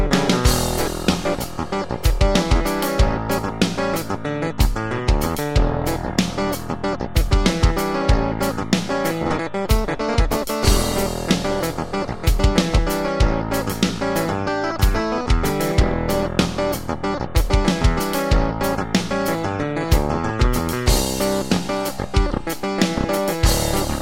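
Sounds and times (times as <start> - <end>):
fat bass clavinet: 0.0 - 24.0.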